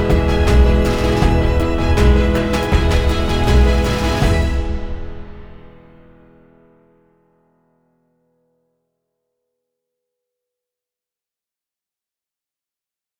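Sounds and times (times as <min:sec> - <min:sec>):
orchestral music: 0:00.0 - 0:06.4.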